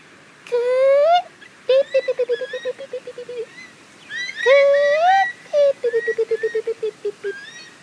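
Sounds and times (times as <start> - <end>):
person imitating an eastern curlew call: 0.5 - 3.6, 4.2 - 7.7.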